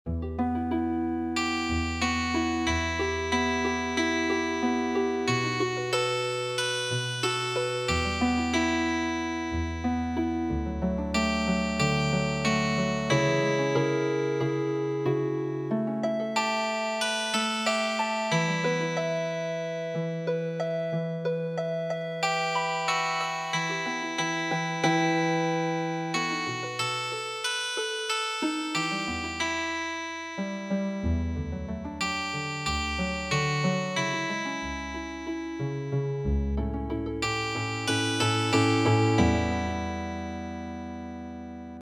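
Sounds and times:
healing harp music: 0:00.1 - 0:41.7.

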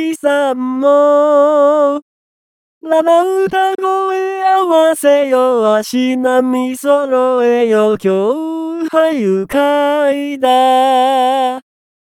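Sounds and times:
man singing a traditional vocal: 0:00.0 - 0:02.0, 0:02.8 - 0:11.7.

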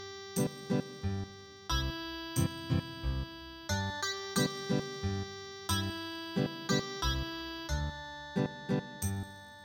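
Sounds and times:
ethnic guitar melody: 0:00.0 - 0:09.6.

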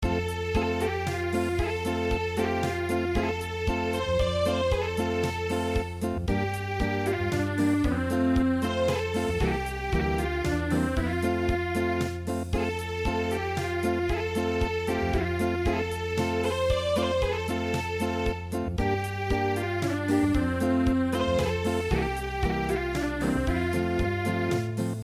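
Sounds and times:
unplugged midi music: 0:00.0 - 0:25.0.

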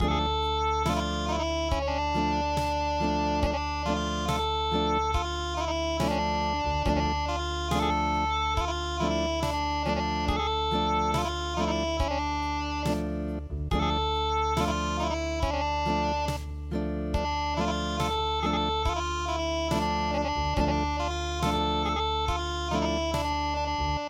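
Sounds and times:
acoustic music: 0:00.0 - 0:24.0.

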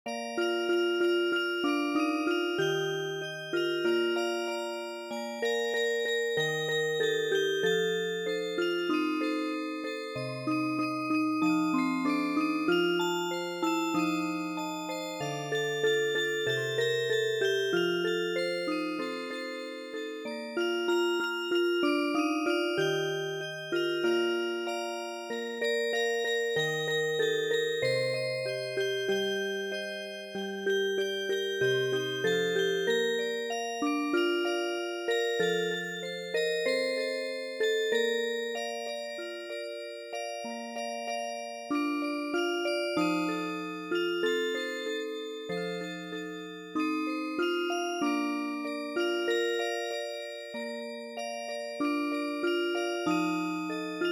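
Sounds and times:
music box: 0:00.1 - 0:54.1.

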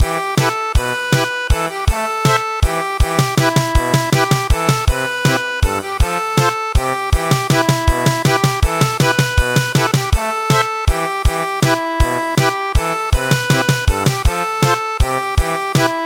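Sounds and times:
German polka in MIDI: 0:00.0 - 0:16.0.

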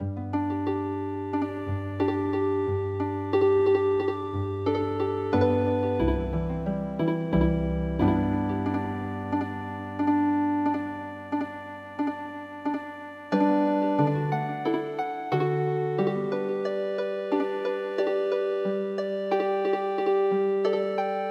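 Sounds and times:
healing harp music: 0:00.0 - 0:21.2.

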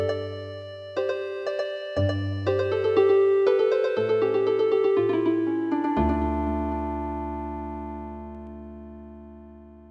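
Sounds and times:
traditional MIDI harp music: 0:00.0 - 0:09.8.

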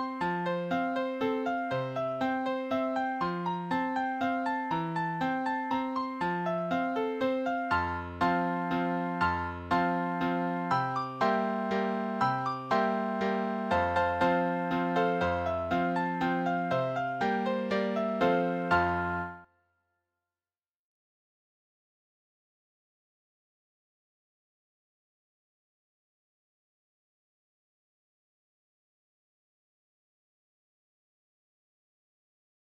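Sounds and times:
piano piece: 0:00.0 - 0:19.5.

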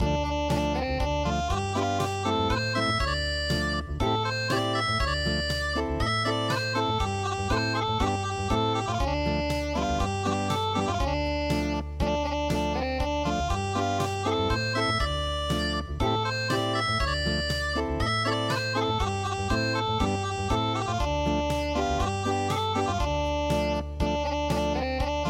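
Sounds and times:
unplugged MIDI music: 0:00.0 - 0:25.2.

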